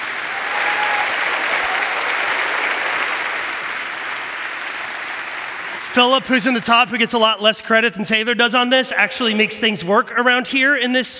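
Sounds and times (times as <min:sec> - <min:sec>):
crowd clapping: 0:00.0 - 0:06.8
speech: 0:06.0 - 0:11.1.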